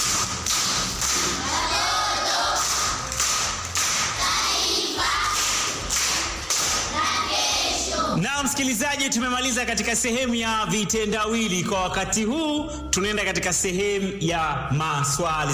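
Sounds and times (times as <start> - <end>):
listeners clapping for a child on a radio quiz show: 0.0 - 7.9
speech: 8.6 - 15.5.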